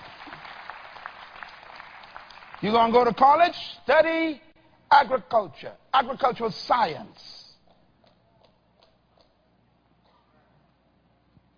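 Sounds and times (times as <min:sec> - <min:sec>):
audience clapping at a talk about farming and food production: 0:00.0 - 0:03.5
speech: 0:02.6 - 0:07.4.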